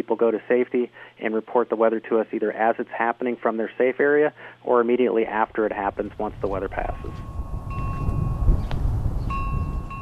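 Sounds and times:
speech: 0.0 - 7.3
gentle wind blowing across a quiet farm near Williamston: 5.2 - 10.0.

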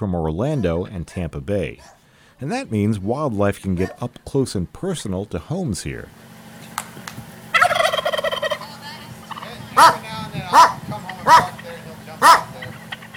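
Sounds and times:
speech: 0.0 - 6.3
wild turkey gobbling: 6.4 - 13.1
dog barking: 9.8 - 11.6, 12.2 - 12.7.

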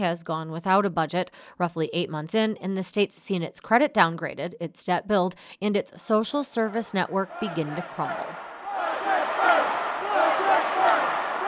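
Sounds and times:
speech: 0.0 - 8.5
demonstrators chanting outside: 7.2 - 11.4.

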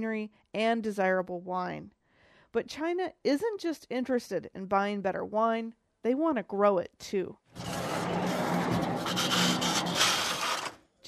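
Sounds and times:
speech: 0.0 - 7.7
sliding greenhouse door being opened: 7.6 - 10.8.

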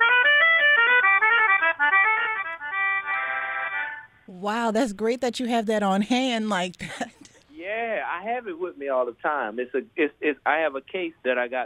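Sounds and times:
reedy melodica played live: 0.0 - 7.3
speech: 4.4 - 11.6.

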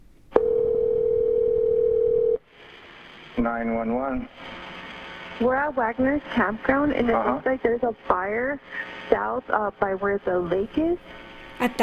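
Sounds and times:
telephone dial tone: 0.4 - 2.4
speech: 3.4 - 4.6, 5.4 - 11.8.

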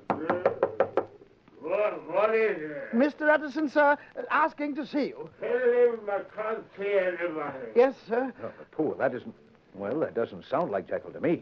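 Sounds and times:
knocking on a laboratory door: 0.0 - 1.1
speech: 1.9 - 11.4.

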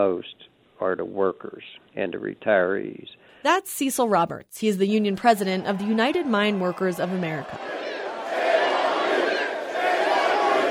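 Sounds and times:
speech: 0.0 - 7.9
protest crowd demonstrating against Patriot Coal: 5.2 - 10.6.

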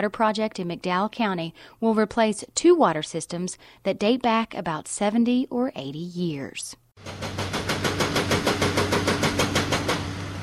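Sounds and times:
speech: 0.0 - 7.4
yellow backhoe knocking rocks from a mountainside: 7.0 - 10.2.

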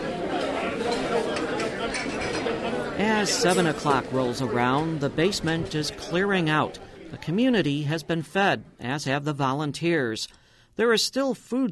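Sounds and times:
many overlapping voices chattering: 0.0 - 10.0
dishes and cutlery clinking: 0.3 - 4.1
speech: 3.0 - 11.7.

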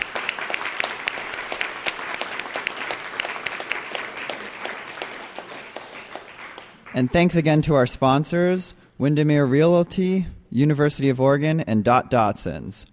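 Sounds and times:
audience round of applause: 0.0 - 7.3
speech: 7.0 - 12.9.

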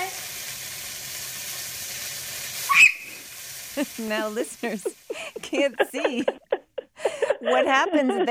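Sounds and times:
chicken frying in hot oil: 0.0 - 5.4
speech: 3.8 - 6.4, 7.4 - 8.3
laughter: 3.8 - 8.3.

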